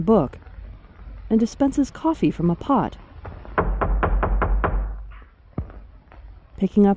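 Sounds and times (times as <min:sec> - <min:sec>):
speech: 0:00.0 - 0:00.4, 0:01.3 - 0:03.0, 0:06.6 - 0:06.9
firm knocking on a door: 0:03.6 - 0:05.1.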